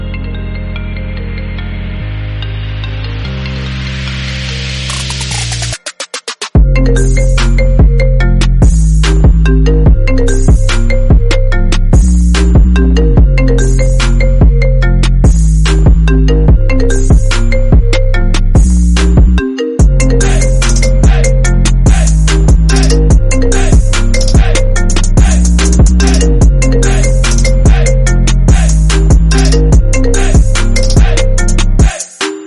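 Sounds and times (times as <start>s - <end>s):
ringtone trap remix: 3.3s - 32.4s.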